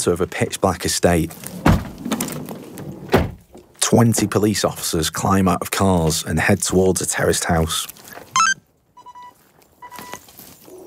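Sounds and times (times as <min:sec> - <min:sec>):
speech: 0:00.0 - 0:01.9, 0:03.9 - 0:08.0
police radio beeps: 0:08.4 - 0:10.8.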